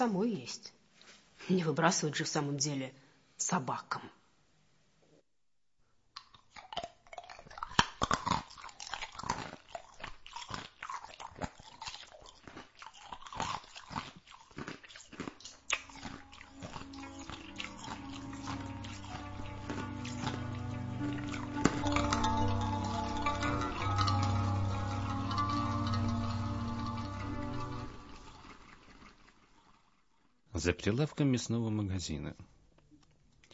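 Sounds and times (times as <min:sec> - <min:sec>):
speech: 0:00.0 - 0:00.8, 0:01.4 - 0:04.2, 0:30.9 - 0:32.5
chewing and biting on rib bones: 0:06.2 - 0:30.1.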